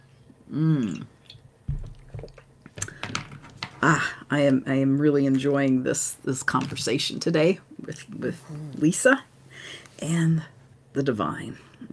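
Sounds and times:
speech: 0.5 - 1.1, 3.8 - 9.3, 10.0 - 11.9
person taking a swig of water: 0.9 - 2.9.

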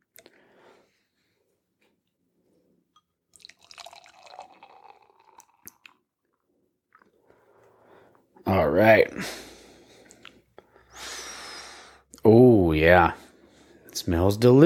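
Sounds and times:
fizzing of a freshly opened drink can: 3.4 - 6.0
speech: 8.6 - 9.5, 12.8 - 13.2, 14.0 - 14.6.

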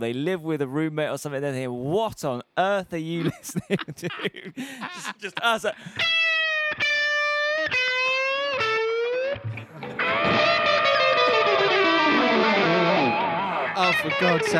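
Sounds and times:
speech: 0.0 - 6.2, 13.8 - 14.5
laughter: 3.1 - 6.0
Telecaster electric guitar played through distortion effects: 5.9 - 14.5.

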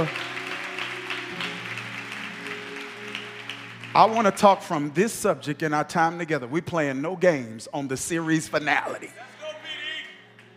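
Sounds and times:
speech: 0.0 - 0.3, 4.0 - 9.4
audience clapping along in a steady rhythm: 0.0 - 5.9, 9.4 - 10.5
sustained organ chords: 0.0 - 10.5.

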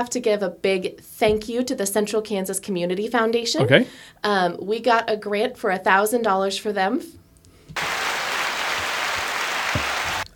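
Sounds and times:
speech: 0.0 - 7.2
applause sound effect button: 7.8 - 10.3.

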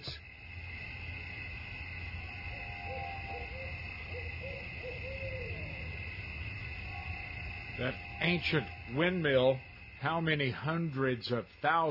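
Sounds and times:
insect-like buzzing: 0.0 - 10.4
hoot owl hooting at night: 2.5 - 9.1
speech: 7.8 - 11.8.

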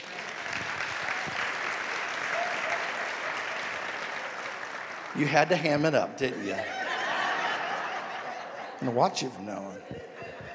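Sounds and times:
audience hand clapping: 0.0 - 6.4
speech: 5.2 - 6.8, 8.8 - 10.2
laughter: 5.2 - 10.5.

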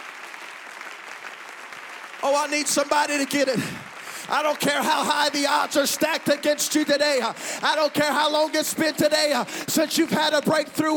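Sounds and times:
audience clapping hands: 0.0 - 10.9
speech: 2.2 - 10.9.

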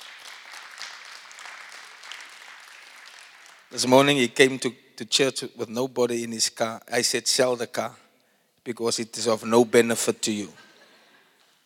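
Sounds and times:
room full of people clapping: 0.0 - 4.2
speech: 3.7 - 8.0, 8.6 - 10.7.

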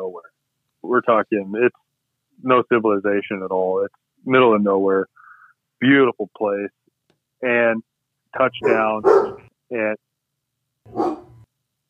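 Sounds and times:
speech: 0.9 - 1.8, 2.4 - 5.1, 5.8 - 6.8, 7.4 - 10.0, 10.9 - 11.2
dog barking with a slight growl: 8.6 - 9.5, 10.9 - 11.4.

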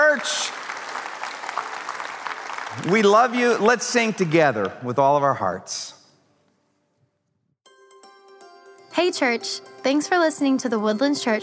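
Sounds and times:
crowd clapping: 0.0 - 4.8
speech: 2.8 - 6.0, 9.0 - 11.4.

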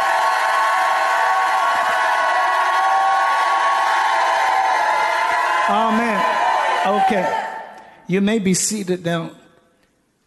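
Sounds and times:
audience shouting: 0.0 - 7.8
speech: 6.8 - 7.4, 8.1 - 9.4.

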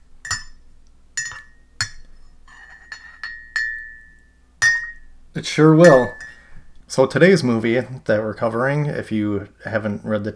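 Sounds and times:
spoon clinking in a mug: 0.2 - 0.6, 1.2 - 5.1, 5.8 - 6.5
speech: 5.4 - 6.2, 6.9 - 10.3.

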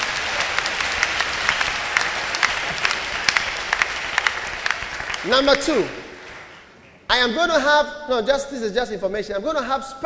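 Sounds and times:
crowd applauding: 0.0 - 7.0
speech: 5.2 - 6.0, 7.1 - 10.0.

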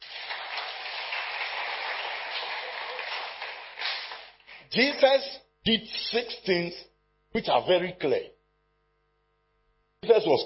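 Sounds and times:
audience clapping: 0.0 - 5.0
speech: 4.7 - 8.4, 10.1 - 10.4.

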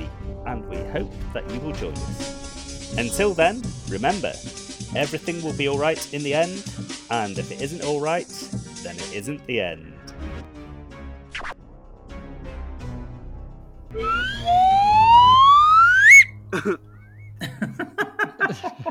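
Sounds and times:
speech: 0.5 - 9.9, 16.6 - 16.9
whistle being blown: 13.9 - 16.4
laughter: 16.5 - 16.8, 17.4 - 18.8.

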